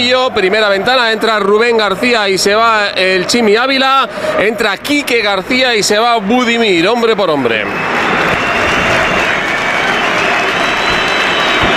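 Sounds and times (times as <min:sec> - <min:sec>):
speech: 0:00.0 - 0:08.4
stadium crowd applauding substituted players: 0:00.0 - 0:11.7.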